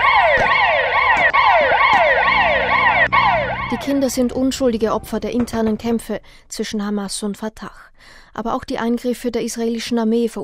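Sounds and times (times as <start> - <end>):
ambulance sirens: 0.0 - 5.2
speech: 3.8 - 10.4.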